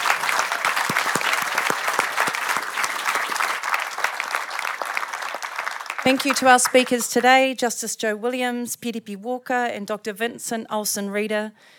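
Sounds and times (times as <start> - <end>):
audience round of applause: 0.0 - 7.0
speech: 6.1 - 11.7.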